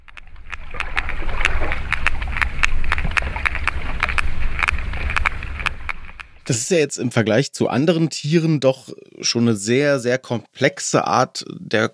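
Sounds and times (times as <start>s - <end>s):
sperm whale clicks: 0.0s - 6.5s
underwater rumble and hiss: 0.0s - 6.5s
speech: 6.5s - 11.9s.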